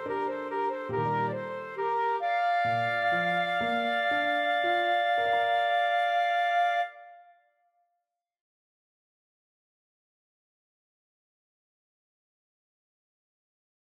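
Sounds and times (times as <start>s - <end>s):
flute and clarinet duet: 0.0s - 7.3s.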